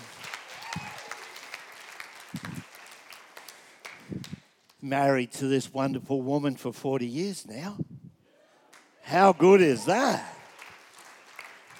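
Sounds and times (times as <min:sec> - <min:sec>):
audience cheering and applause: 0:00.0 - 0:04.2, 0:09.1 - 0:11.7
speech: 0:04.8 - 0:07.9, 0:09.1 - 0:10.3.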